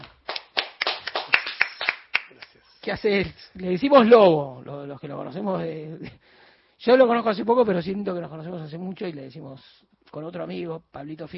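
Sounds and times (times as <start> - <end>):
audience applause: 0.3 - 2.5
speech: 2.8 - 11.3.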